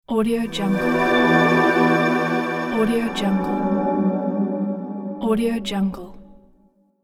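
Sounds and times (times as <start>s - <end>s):
logo intro jingle: 0.6s - 5.9s.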